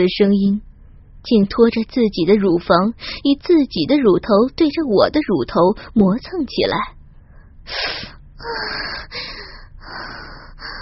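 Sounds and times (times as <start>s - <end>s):
speech: 0.0s - 7.0s, 7.7s - 10.7s
two people sharply inhaling: 7.7s - 8.2s.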